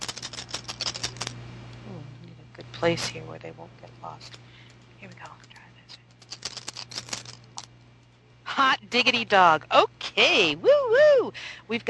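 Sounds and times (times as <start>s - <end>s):
two dice rolled during a tabletop game: 0.0s - 1.3s, 5.1s - 7.7s
faint low hum: 0.0s - 11.8s
speech: 2.8s - 5.6s, 8.6s - 11.8s.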